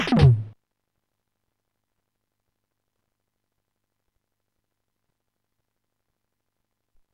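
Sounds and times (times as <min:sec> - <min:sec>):
joke rimshot: 0:00.0 - 0:00.5.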